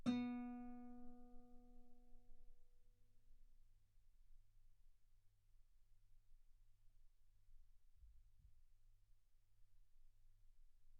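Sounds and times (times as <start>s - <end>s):
guitar B3 note on B string played fortissimo: 0.0s - 1.3s.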